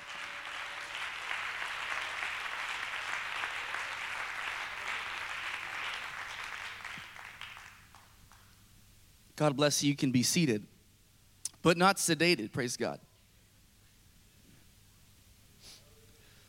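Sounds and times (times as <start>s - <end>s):
large crowd clapping hands in praise: 0.0s - 8.6s
speech: 9.4s - 10.7s, 11.6s - 13.1s.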